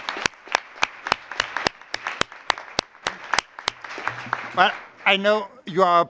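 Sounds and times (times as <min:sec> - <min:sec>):
audience clapping: 0:00.0 - 0:05.4
speech: 0:04.6 - 0:06.0.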